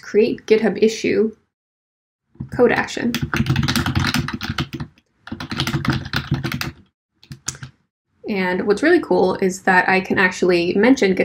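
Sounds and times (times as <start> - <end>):
speech: 0.1 - 1.4, 2.4 - 3.6, 8.3 - 11.2
fast typing on a computer keyboard: 2.8 - 7.8.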